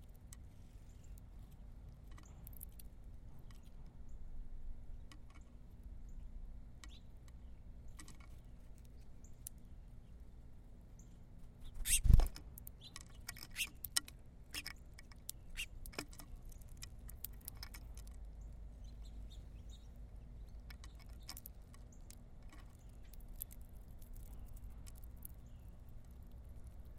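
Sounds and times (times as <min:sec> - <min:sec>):
birds scratching and pecking at a feeder: 0:00.0 - 0:04.0, 0:04.9 - 0:26.9
wings fluttering: 0:11.7 - 0:12.5.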